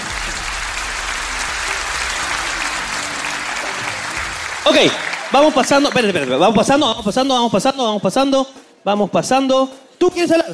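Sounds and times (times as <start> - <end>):
audience applause: 0.0 - 7.0
speech: 4.7 - 10.5.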